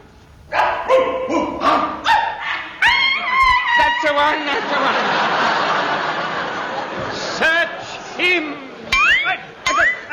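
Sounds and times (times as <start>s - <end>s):
sheepdogs barking one after another: 0.5s - 3.2s
laughter: 2.9s - 10.1s.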